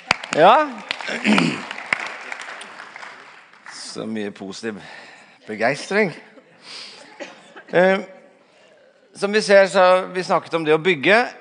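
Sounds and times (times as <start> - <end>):
audience applause: 0.0 - 4.0
speech: 0.4 - 1.7, 3.9 - 6.9, 7.7 - 8.2, 9.2 - 11.3.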